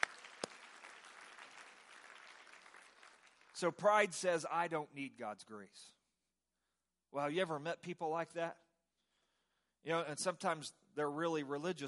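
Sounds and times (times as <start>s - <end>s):
people clapping: 0.0s - 4.1s
speech: 3.6s - 6.0s, 7.1s - 8.6s, 9.8s - 11.8s.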